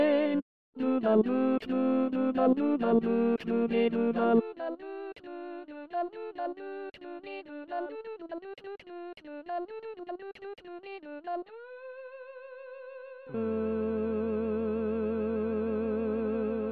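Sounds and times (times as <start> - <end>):
tenor voice singing an SATB choral part: 0.0 - 6.6, 13.3 - 16.7.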